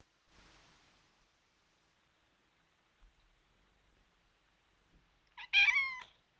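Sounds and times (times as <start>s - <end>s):
cat mewing: 5.4s - 6.2s.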